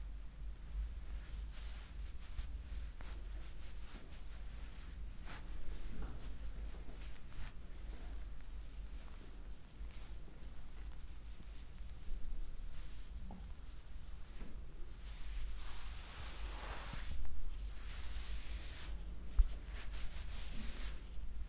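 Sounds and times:
steady low hum: 0.0s - 21.4s
soft rubbing and rustling from a neck, back and scalp massage: 0.7s - 21.4s.

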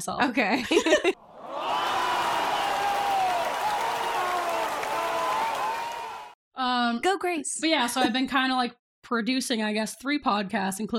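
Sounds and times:
speech: 0.0s - 1.2s, 6.9s - 10.9s
cheering: 1.2s - 6.4s
applause: 1.4s - 6.4s.

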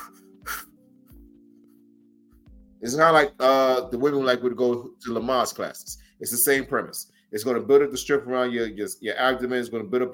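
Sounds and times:
deep breathing demonstrated as an abdominal and core exercise: 0.0s - 0.8s
speech: 2.8s - 10.1s.

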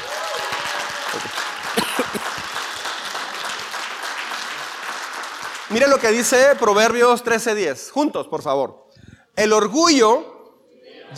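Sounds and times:
audience applauding: 0.0s - 7.0s
speech: 1.2s - 1.4s, 5.7s - 8.8s, 9.4s - 10.3s.

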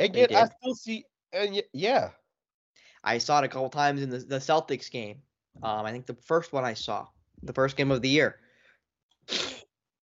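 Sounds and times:
speech: 0.0s - 2.2s, 3.0s - 8.4s, 9.3s - 9.6s
sneeze: 9.3s - 9.6s.

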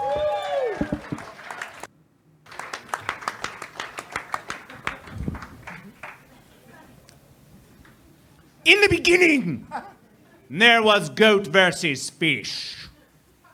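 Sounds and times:
audience applause and cheering: 0.0s - 1.9s, 2.5s - 6.3s
speech: 8.7s - 9.9s, 10.5s - 12.8s.

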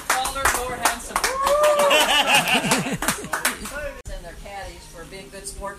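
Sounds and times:
crowd applauding: 0.0s - 4.0s
laughter: 1.6s - 3.9s.

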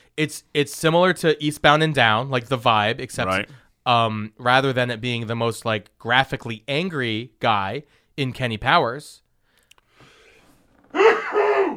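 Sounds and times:
speech: 0.2s - 9.2s
sneeze: 11.0s - 11.7s.

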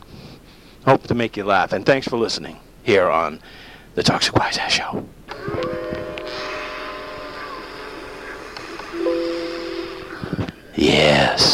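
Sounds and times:
speech: 0.8s - 5.6s
doorbell ringing: 5.4s - 8.2s, 9.0s - 10.4s.

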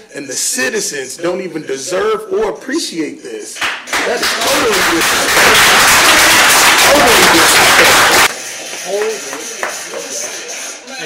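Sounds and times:
speech: 0.2s - 6.2s
audience applause at a public meeting: 3.9s - 8.3s.

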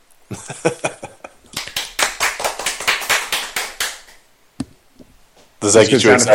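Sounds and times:
speech: 0.3s - 0.9s, 5.6s - 6.3s
applause sound effect: 1.6s - 4.2s.

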